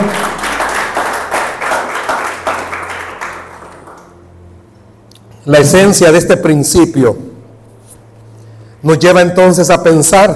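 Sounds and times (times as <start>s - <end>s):
audience applauding: 0.0s - 4.2s
speech: 5.5s - 7.3s, 8.8s - 10.3s.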